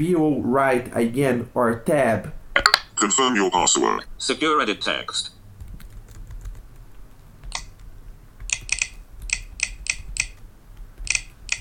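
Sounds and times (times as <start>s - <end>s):
speech: 0.0s - 2.4s, 3.0s - 5.4s
typing a password on a computer keyboard: 5.6s - 11.5s.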